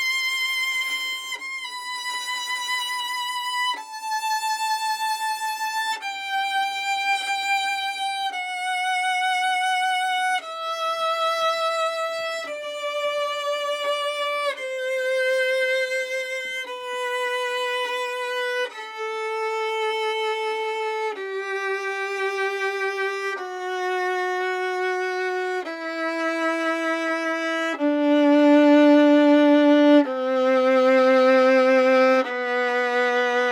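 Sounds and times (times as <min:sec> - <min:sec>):
scale played with a modern bow on gut strings: 0:00.0 - 0:33.4.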